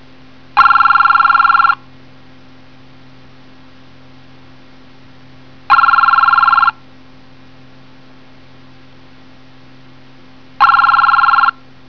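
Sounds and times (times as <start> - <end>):
telephone: 0.6 - 1.8, 5.7 - 6.8, 10.6 - 11.6.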